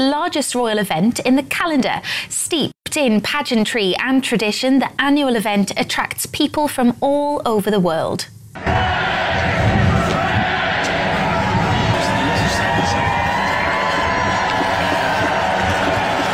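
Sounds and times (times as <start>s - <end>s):
speech: 0.0s - 9.8s
large crowd cheering at royal event: 8.6s - 16.3s.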